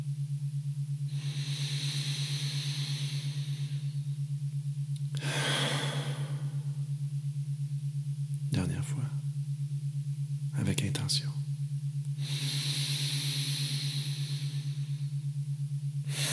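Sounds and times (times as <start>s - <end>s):
steady low hum: 0.0s - 16.3s
deep inhale and complete exhale during a meditation: 1.0s - 4.2s, 5.1s - 6.9s, 12.2s - 16.3s
speech: 11.1s - 11.3s.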